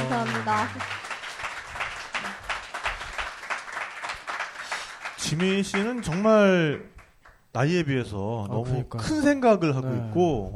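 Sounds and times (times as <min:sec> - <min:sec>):
applause: 0:00.0 - 0:07.4
speech: 0:00.5 - 0:01.0, 0:05.2 - 0:06.9, 0:07.6 - 0:10.5.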